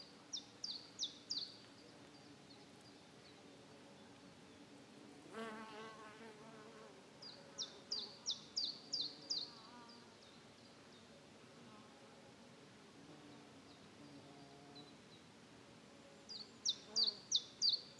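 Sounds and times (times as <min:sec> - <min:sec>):
forest ambience in Bern Switzerland: 0:00.0 - 0:17.9.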